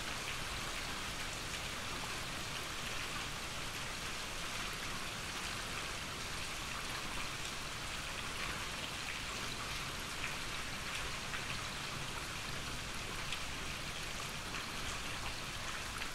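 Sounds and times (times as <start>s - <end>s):
gentle rain: 0.0s - 16.1s.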